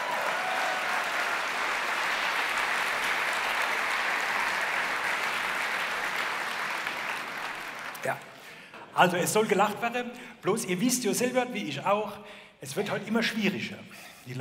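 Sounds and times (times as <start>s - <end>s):
audience applause: 0.0s - 8.6s
speech: 8.0s - 8.3s, 9.0s - 14.4s.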